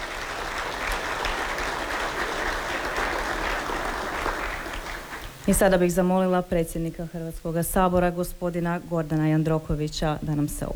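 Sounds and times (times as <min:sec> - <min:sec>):
crowd applause for quiz winners in the Croatian Parliament: 0:00.0 - 0:05.4
speech: 0:05.5 - 0:10.7.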